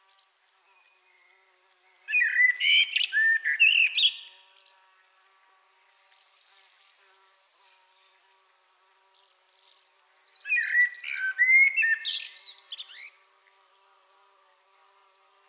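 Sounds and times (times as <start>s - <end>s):
common blackbird singing: 2.1s - 4.4s, 10.4s - 13.1s.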